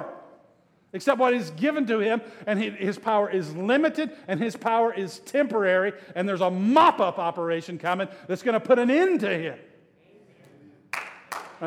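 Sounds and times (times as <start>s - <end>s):
speech: 0.9s - 9.7s
small audience clapping: 10.9s - 11.6s.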